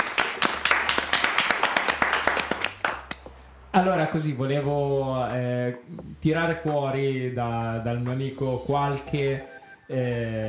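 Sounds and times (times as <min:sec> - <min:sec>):
applause: 0:00.0 - 0:03.2
speech: 0:03.8 - 0:10.4.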